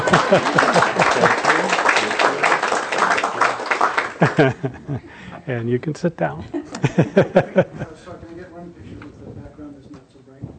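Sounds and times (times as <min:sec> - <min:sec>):
wedding guests clapping: 0:00.0 - 0:04.8
laughter: 0:00.0 - 0:05.3, 0:06.4 - 0:08.1
speech: 0:00.1 - 0:01.8, 0:04.2 - 0:08.2.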